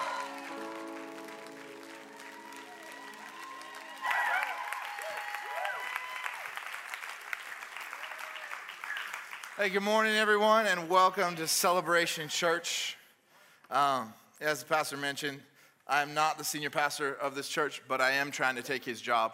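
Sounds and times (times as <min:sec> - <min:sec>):
held musical chord: 0:00.0 - 0:03.4
church congregation clapping at a Sunday morning service at Celebration Church: 0:00.0 - 0:10.4
speech: 0:09.6 - 0:13.0, 0:13.7 - 0:19.3.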